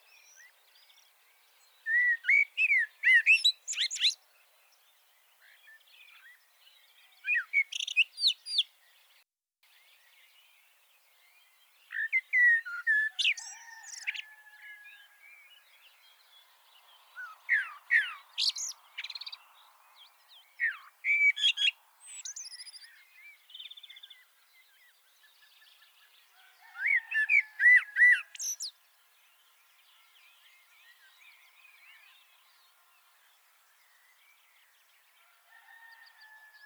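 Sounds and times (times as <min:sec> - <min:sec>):
common blackbird song: 0:00.0 - 0:36.6.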